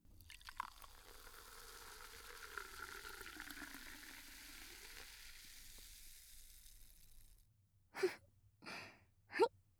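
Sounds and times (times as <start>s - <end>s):
fizzing carbonated cider being poured into a glass: 0.1s - 7.4s.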